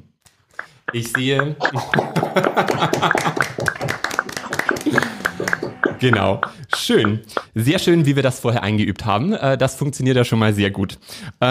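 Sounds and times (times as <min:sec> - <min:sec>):
live audience clapping: 0:00.6 - 0:07.5
speech: 0:00.9 - 0:03.5, 0:06.0 - 0:11.5
laughter: 0:00.9 - 0:06.4.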